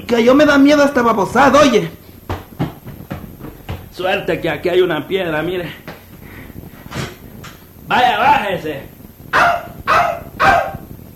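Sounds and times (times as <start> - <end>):
speech: 0.0 - 2.0, 4.0 - 5.8, 7.9 - 9.5
dog barking: 9.3 - 10.9.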